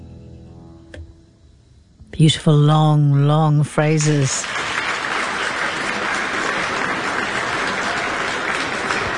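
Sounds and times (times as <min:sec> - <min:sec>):
speech: 0:02.2 - 0:04.6
audience applauding after violin performance: 0:04.0 - 0:09.1.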